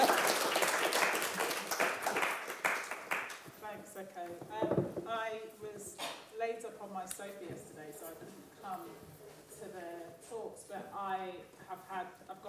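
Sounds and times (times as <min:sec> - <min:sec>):
crowd applauding: 0:00.0 - 0:03.4
speech: 0:04.0 - 0:12.4.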